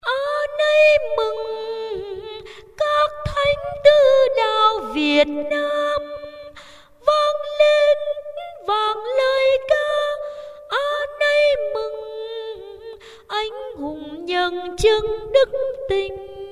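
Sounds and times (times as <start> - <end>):
soprano singing high: 0.0 - 16.5.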